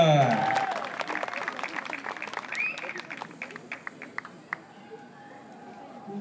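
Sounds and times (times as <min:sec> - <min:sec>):
audience applause for a band: 0:00.0 - 0:04.6.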